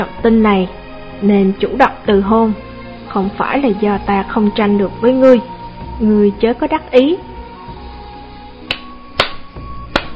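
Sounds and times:
speech: 0.0 - 7.3
young man clapping hands outdoors at night: 8.7 - 10.1.

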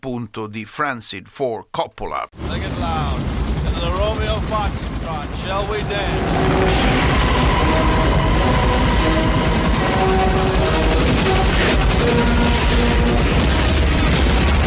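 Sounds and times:
speech: 0.0 - 7.9, 8.7 - 10.8
film helicopter attack explosions: 2.4 - 14.6
helicopter mechanical roar: 2.4 - 14.6
film battle gunfire: 8.8 - 14.6.

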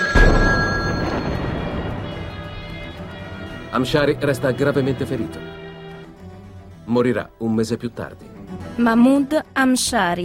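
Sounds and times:
telephone ringing: 0.0 - 1.8
bomb planted in a telephone receiver exploding in Paris: 0.0 - 3.9
speech: 3.8 - 5.6, 6.9 - 10.2.

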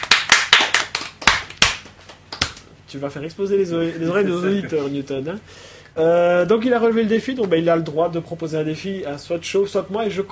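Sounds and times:
hand clapping: 0.0 - 2.7
speech: 2.9 - 10.3.

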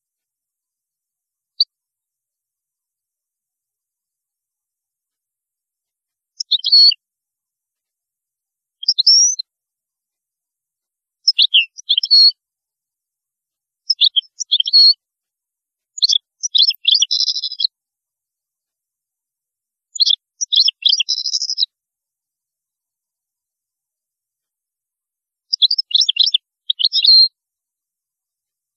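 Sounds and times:
European goldfinch twittering song: 6.4 - 7.0, 8.8 - 9.5, 11.2 - 12.4, 13.9 - 15.0, 16.0 - 17.7, 19.9 - 21.7, 25.5 - 27.3.

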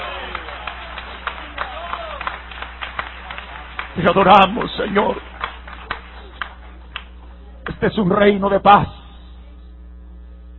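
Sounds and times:
audience applause: 0.0 - 7.2
speech: 4.0 - 5.3, 7.8 - 9.0.

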